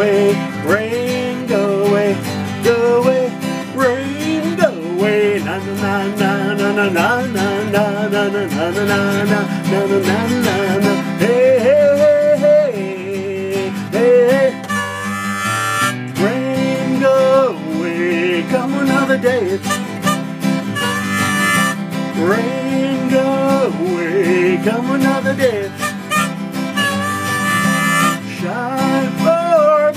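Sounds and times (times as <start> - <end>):
guitar: 0.0 - 29.9
harmonica: 14.0 - 16.3, 19.0 - 22.4, 25.2 - 28.5.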